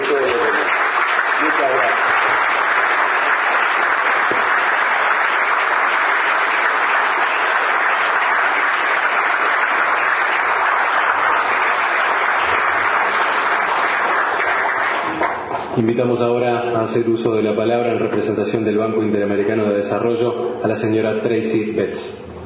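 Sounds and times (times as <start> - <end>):
audience applause: 0.0 - 15.8
speech: 15.8 - 22.3.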